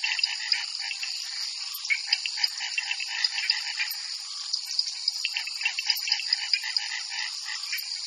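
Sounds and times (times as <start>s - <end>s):
Amazon night forest and jungle ambience: 0.0s - 8.0s.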